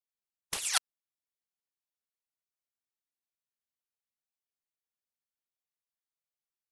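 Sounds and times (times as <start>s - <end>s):
electric flash gear: 0.6s - 0.8s.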